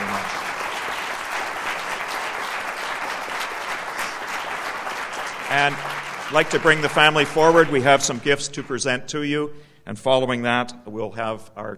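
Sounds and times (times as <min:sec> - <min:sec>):
audience applause: 0:00.0 - 0:09.1
speech: 0:05.5 - 0:11.7.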